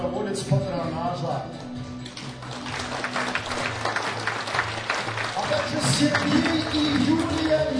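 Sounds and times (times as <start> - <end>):
speech: 0.4 - 1.7, 6.0 - 7.3
audience applause: 2.4 - 7.7.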